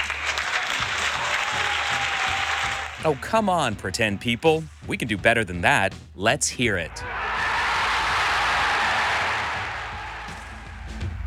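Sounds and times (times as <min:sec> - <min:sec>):
crowd cheering: 0:00.0 - 0:03.7, 0:07.0 - 0:11.2
crowd clapping: 0:00.0 - 0:04.9, 0:07.2 - 0:11.1
speech: 0:03.0 - 0:07.2.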